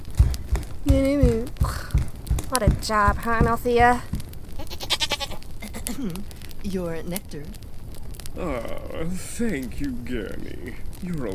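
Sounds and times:
dull thumping steps: 0.0 - 6.0
speech: 0.8 - 1.8, 2.6 - 4.1, 5.9 - 7.6, 8.4 - 11.3
goat bleating: 4.6 - 5.9.

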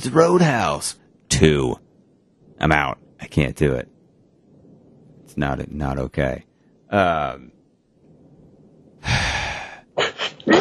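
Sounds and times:
speech: 0.0 - 1.8, 2.6 - 3.9, 5.3 - 7.6
sneeze: 10.0 - 10.5.

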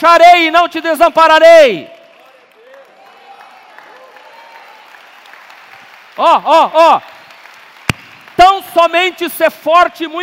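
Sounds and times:
speech: 0.0 - 2.0, 6.2 - 7.2, 8.4 - 10.2
audience applause: 2.2 - 8.9.

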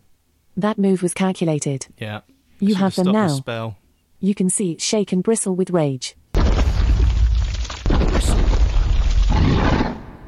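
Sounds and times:
speech: 0.6 - 6.2
rock beast cracking and crumbling in a fantasy role-playing game: 6.4 - 10.0.

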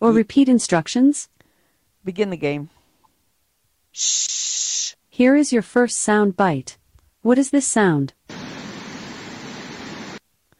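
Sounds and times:
speech: 0.0 - 1.4, 2.0 - 2.8, 3.9 - 4.6, 5.2 - 8.4
rain falling: 8.3 - 10.2.

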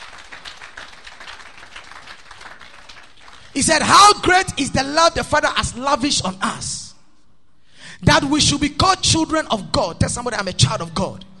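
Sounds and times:
audience clapping: 0.0 - 3.9
speech: 3.6 - 6.8, 8.0 - 11.3.

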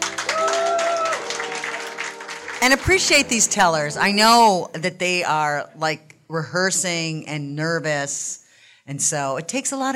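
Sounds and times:
audience clapping: 0.0 - 4.0
speech: 2.6 - 9.9.

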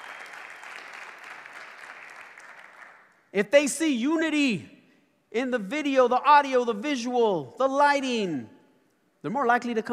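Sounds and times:
audience clapping: 0.0 - 3.2
speech: 3.3 - 8.6, 9.2 - 9.9.

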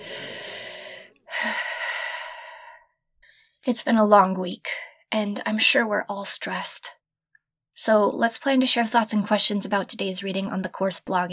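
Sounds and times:
deep breath in and out: 0.0 - 3.6
speech: 3.6 - 7.0, 7.8 - 11.3.

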